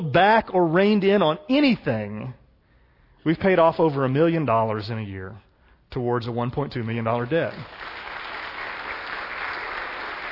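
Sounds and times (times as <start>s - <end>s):
speech: 0.0s - 2.4s, 3.2s - 7.9s
audience applause: 7.5s - 10.3s.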